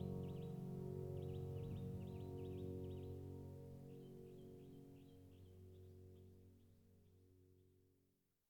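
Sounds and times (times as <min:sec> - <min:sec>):
piano: 0:00.0 - 0:06.8.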